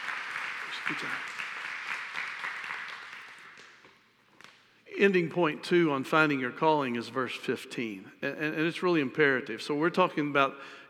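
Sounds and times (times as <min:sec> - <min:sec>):
audience applause: 0:00.0 - 0:03.8
speech: 0:00.9 - 0:01.4, 0:05.0 - 0:10.8.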